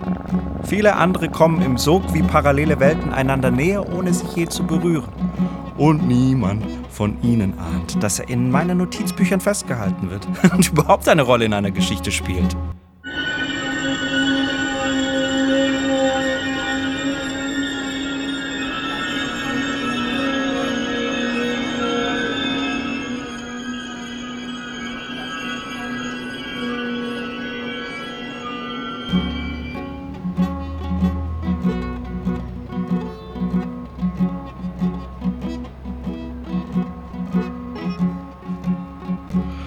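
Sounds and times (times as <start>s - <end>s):
train's high-pitched tonal whine and metallic squeal: 0.0s - 10.5s, 12.0s - 39.6s
speech: 0.3s - 12.8s.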